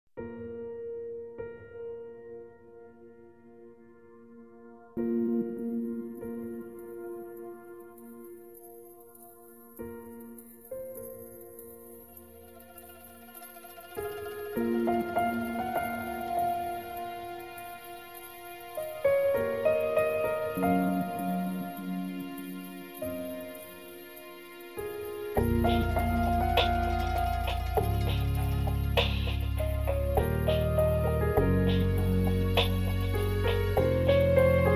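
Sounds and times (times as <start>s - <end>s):
piano music: 0.2s - 34.7s.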